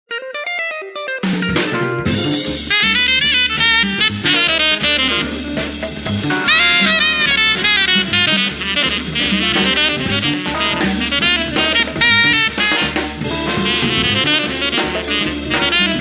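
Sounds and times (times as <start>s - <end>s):
jazz bar ambience: 0.9s - 15.9s.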